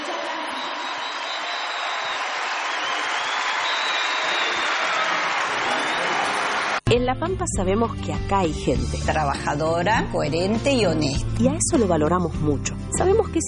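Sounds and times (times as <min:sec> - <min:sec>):
faint cheering: 0:00.0 - 0:06.8
loud applause from a large audience: 0:00.0 - 0:06.8
speech: 0:07.0 - 0:13.4.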